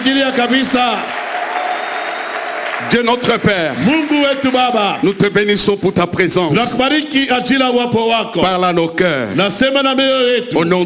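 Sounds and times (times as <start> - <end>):
church congregation applauding and cheering: 0.0 - 5.8
speech: 0.1 - 1.2, 2.8 - 10.8.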